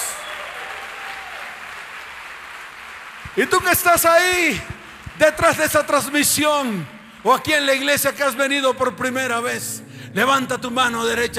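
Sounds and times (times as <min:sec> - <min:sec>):
audience applause: 0:00.0 - 0:06.2
speech: 0:03.4 - 0:11.3.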